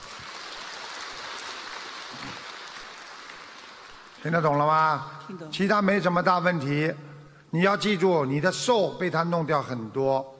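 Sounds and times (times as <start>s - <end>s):
crowd applauding: 0.0s - 5.3s
speech: 4.2s - 10.3s.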